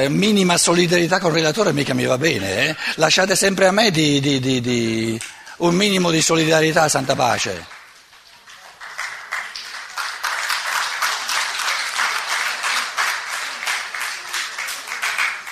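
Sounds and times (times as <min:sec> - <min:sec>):
speech: 0:00.0 - 0:07.8
audience applause: 0:07.2 - 0:15.5.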